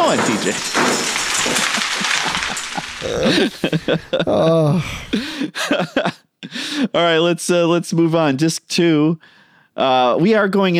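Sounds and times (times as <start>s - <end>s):
board game knocked over: 0.0s - 4.2s
speech: 0.1s - 1.6s, 3.0s - 10.7s
laughter: 1.4s - 6.3s.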